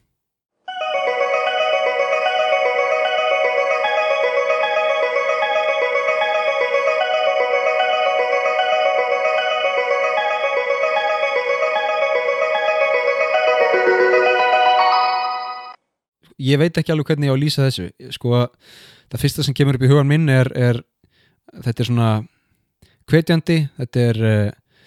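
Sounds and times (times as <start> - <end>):
Tokyo train station departure melody: 0.7 - 15.8
speech: 16.4 - 20.9, 21.6 - 22.3, 23.1 - 24.6.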